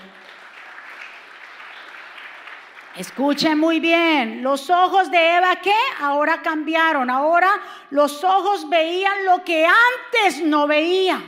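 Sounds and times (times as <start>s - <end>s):
audience applause: 0.0s - 3.4s
speech: 3.0s - 11.2s.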